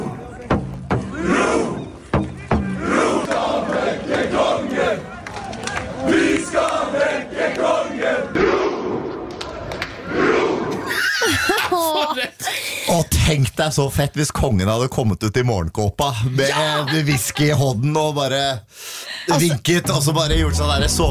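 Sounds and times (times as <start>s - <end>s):
crowd outside palace shouting to wake king: 0.0s - 10.9s
laughter: 10.8s - 13.3s, 16.2s - 17.7s
speech: 13.6s - 21.0s.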